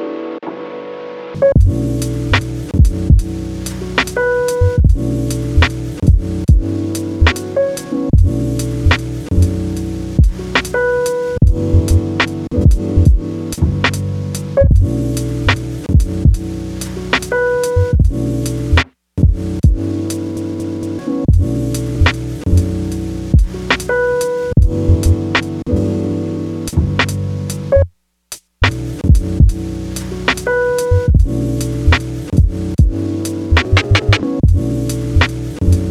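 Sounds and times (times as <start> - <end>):
jazz music: 1.4 - 27.9, 28.6 - 35.8.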